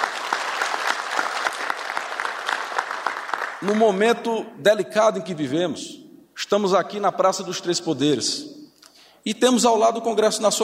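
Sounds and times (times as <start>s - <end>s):
audience applause for athletes: 0.0s - 3.8s
speech: 3.6s - 8.6s, 9.2s - 10.6s.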